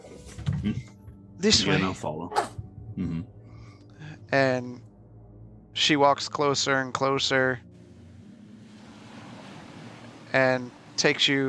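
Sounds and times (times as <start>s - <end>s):
speech: 0.6s - 3.4s, 4.3s - 4.9s, 5.8s - 7.7s, 10.3s - 11.4s
low rumble of wind: 4.8s - 11.4s
water lapping against a coastal shore: 8.6s - 11.4s.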